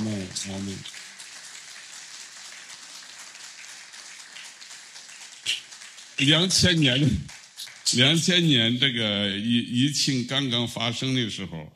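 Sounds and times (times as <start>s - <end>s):
audience applause: 0.0s - 9.0s
speech: 0.4s - 1.0s, 6.2s - 11.7s.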